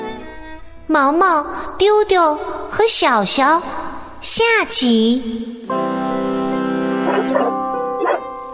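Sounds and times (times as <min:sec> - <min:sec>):
speech: 0:00.9 - 0:05.8
sheepdog barking: 0:07.0 - 0:08.3.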